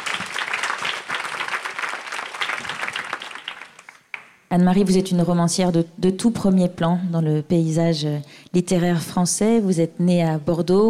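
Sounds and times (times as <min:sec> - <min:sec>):
audience in Manosque applauding a guest novelist: 0:00.0 - 0:04.3
speech: 0:04.5 - 0:10.8.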